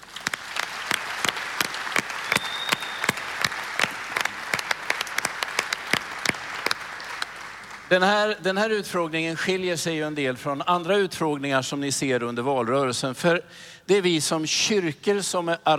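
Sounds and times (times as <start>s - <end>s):
audience applause: 0.0s - 8.0s
speech: 7.9s - 15.7s.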